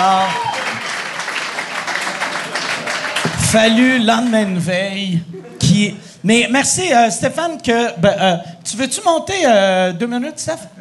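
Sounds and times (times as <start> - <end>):
audience applause: 0.0 - 3.9
speech: 3.5 - 10.7.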